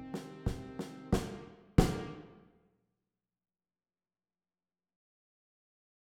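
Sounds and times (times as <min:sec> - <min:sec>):
percussion: 0:00.1 - 0:02.3.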